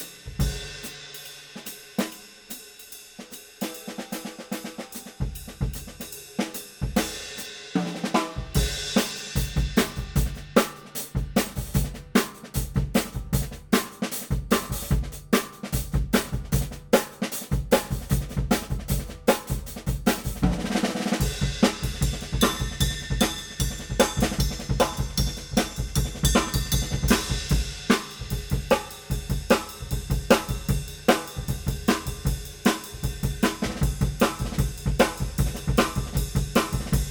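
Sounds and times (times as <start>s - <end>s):
5x14 snare drum: 3.2s - 37.1s.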